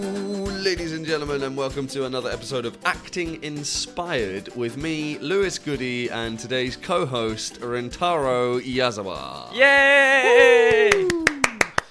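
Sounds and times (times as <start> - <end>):
speech: 0.0 - 11.2
long drawn-out whooping voice: 9.5 - 11.6
studio audience hand claps: 10.5 - 11.8.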